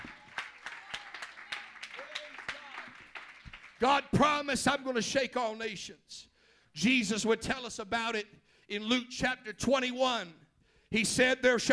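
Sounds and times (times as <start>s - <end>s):
audience clapping hands: 0.0s - 4.0s
speech: 3.8s - 11.7s.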